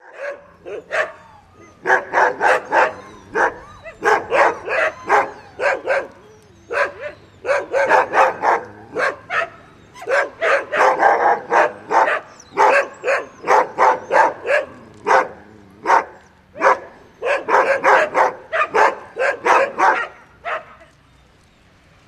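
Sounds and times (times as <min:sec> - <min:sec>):
dog barking: 0:00.0 - 0:01.2, 0:01.8 - 0:21.0.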